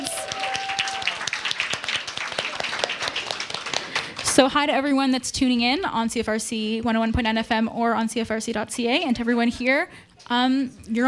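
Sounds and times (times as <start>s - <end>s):
crowd round of applause: 0.0s - 4.4s
speech: 4.4s - 11.0s.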